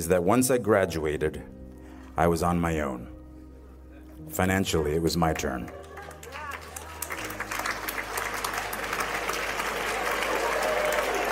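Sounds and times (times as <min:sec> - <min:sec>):
speech: 0:00.0 - 0:01.6, 0:02.2 - 0:03.1, 0:04.2 - 0:05.8
parents applauding: 0:05.3 - 0:11.3.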